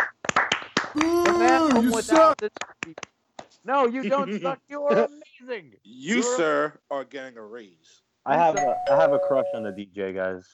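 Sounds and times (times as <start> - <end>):
round of applause: 0.0 - 3.1
speech: 1.0 - 10.5.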